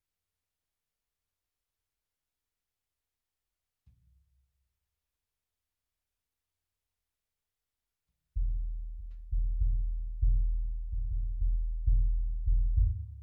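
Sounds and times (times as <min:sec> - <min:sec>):
bass drum: 0:08.4 - 0:13.2.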